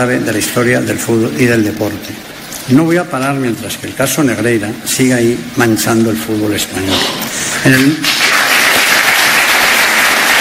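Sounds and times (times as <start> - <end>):
speech: 0.0 - 8.2
audience ovation during a speech: 7.6 - 10.3.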